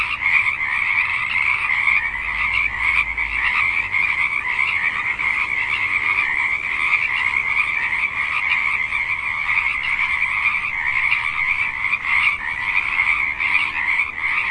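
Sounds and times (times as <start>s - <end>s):
frog ambience: 0.0s - 14.4s.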